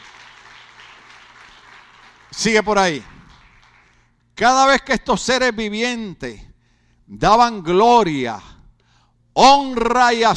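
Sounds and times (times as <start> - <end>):
crowd applause: 0.0 - 4.0
speech: 2.4 - 3.1, 4.4 - 6.5, 7.1 - 8.5, 9.4 - 10.3.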